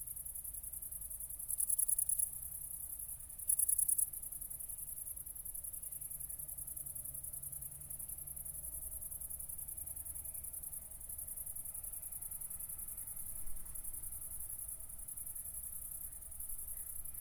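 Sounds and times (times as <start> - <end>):
crickets chirping: 0.0 - 17.1.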